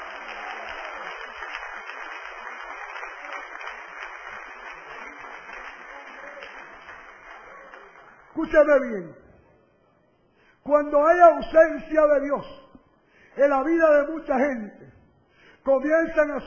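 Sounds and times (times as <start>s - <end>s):
audience applause: 0.0s - 8.8s
speech: 8.4s - 9.2s, 10.7s - 12.6s, 13.4s - 14.8s, 15.6s - 16.4s.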